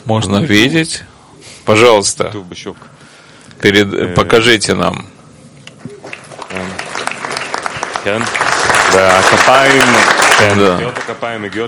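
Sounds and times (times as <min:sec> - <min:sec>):
speech: 0:00.1 - 0:03.0, 0:03.6 - 0:05.2, 0:08.0 - 0:08.4, 0:09.0 - 0:11.6
audience applause: 0:06.0 - 0:11.6.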